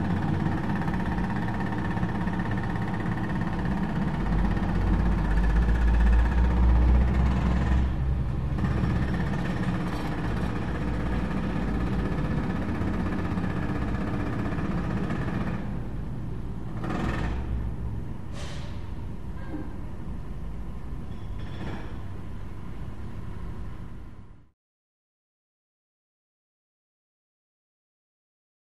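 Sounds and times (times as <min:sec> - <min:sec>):
jackhammer heard through a closed window: 0:00.0 - 0:16.0, 0:16.6 - 0:17.8.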